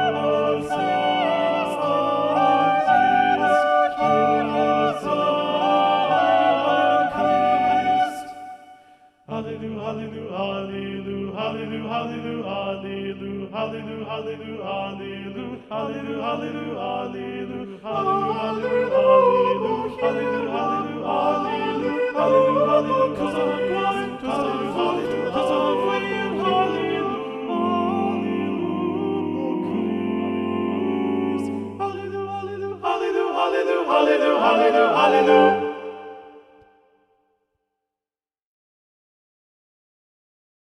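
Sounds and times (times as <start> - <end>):
SATB mixed choir singing incantations: 0.0 - 36.6.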